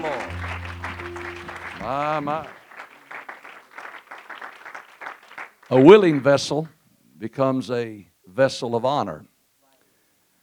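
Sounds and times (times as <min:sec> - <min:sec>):
church congregation applauding to welcome a preacher: 0:00.0 - 0:06.6
speech: 0:01.8 - 0:02.6, 0:05.7 - 0:09.3.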